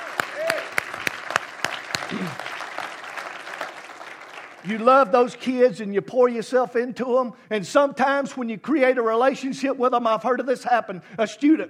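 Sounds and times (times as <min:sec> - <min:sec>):
audience applause: 0:00.0 - 0:05.1
speech: 0:02.1 - 0:02.5, 0:04.6 - 0:11.6.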